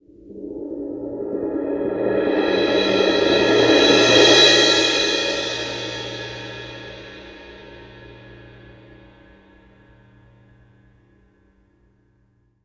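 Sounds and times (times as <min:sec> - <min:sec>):
Synclavier Percussion CYM CRS-R cymbal crash: 0:00.3 - 0:09.7.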